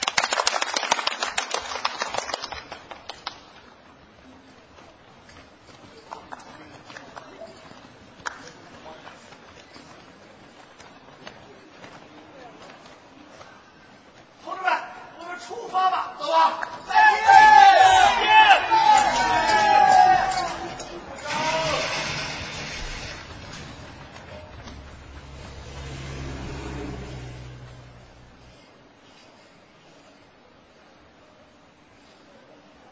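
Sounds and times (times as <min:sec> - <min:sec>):
warm audience applause: 0:00.0 - 0:03.6, 0:16.6 - 0:27.2.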